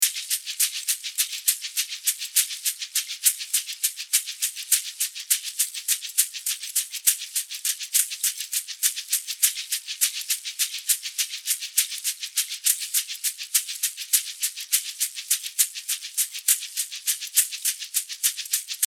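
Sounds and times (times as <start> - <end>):
shaker: 0.0 - 18.8.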